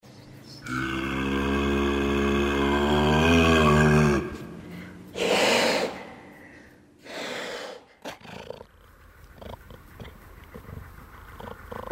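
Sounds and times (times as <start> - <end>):
demonic sounds: 0.6 - 6.5.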